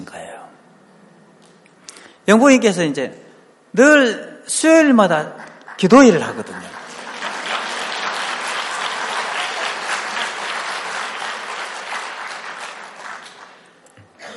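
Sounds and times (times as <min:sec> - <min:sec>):
speech: 0:02.3 - 0:06.8
audience at a church gathering applauding: 0:05.8 - 0:13.8.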